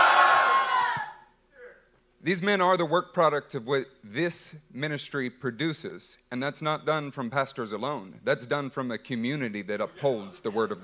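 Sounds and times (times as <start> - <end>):
audience yelling hallelujah: 0.0 - 1.2
speech: 2.2 - 10.8.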